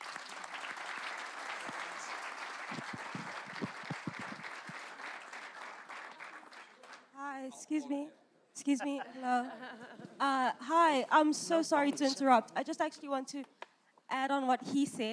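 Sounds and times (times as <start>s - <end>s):
audience applause: 0.0s - 7.1s
speech: 7.5s - 13.5s, 14.2s - 15.1s
laughter: 8.6s - 10.2s.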